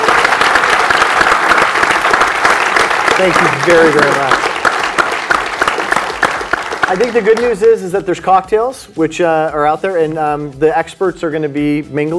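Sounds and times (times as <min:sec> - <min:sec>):
audience applause: 0:00.0 - 0:07.6
speech: 0:03.2 - 0:04.5, 0:06.9 - 0:12.1.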